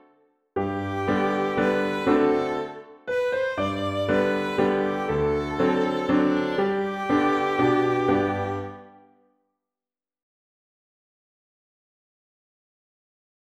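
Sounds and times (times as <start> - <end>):
violin: 0.6 - 9.1.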